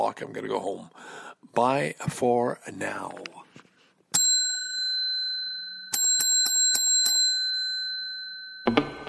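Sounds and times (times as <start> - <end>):
speech: 0.1 - 3.4
bright bicycle-style bell ringing: 4.2 - 8.7.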